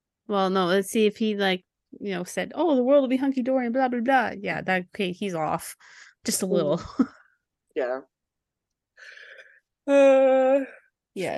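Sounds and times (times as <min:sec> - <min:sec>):
speech: 0:00.3 - 0:07.2, 0:07.8 - 0:08.1, 0:09.9 - 0:11.3
person yawning: 0:09.8 - 0:10.9.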